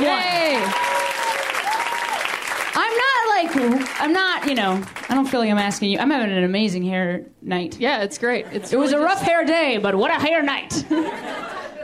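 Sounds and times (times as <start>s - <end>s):
whoops and cheering voices: 0.0s - 2.4s
crowd applauding: 0.0s - 5.3s
speech: 3.6s - 11.6s
laughter: 10.7s - 11.8s.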